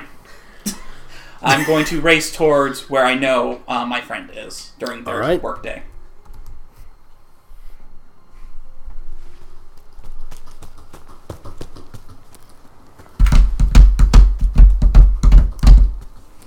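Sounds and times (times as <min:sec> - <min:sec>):
speech: 0:01.4 - 0:05.9
galloping horse hooves sound effect: 0:09.7 - 0:16.4.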